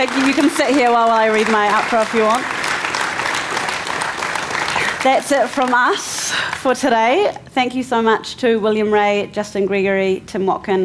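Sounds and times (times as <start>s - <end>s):
speech: 0.0s - 2.6s, 5.0s - 10.8s
audience round of applause: 0.0s - 6.8s.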